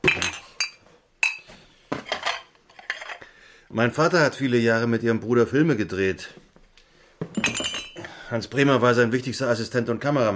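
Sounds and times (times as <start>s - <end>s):
ceramic plates clinking as they are packed into a box: 0.0s - 3.2s, 7.2s - 8.2s
speech: 3.7s - 6.4s, 8.3s - 10.3s.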